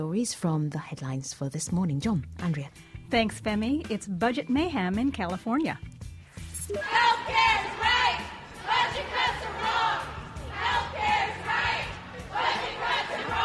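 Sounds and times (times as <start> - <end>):
speech: 0.0 - 5.9, 6.7 - 8.2
Planned Parenthood protesters chanting in unison in downtown Los Angeles: 6.7 - 13.4.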